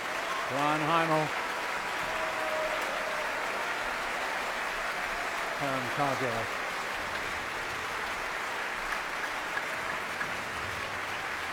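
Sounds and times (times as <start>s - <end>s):
audience applause for soloists: 0.0s - 11.5s
speech: 0.5s - 1.4s, 5.6s - 6.6s.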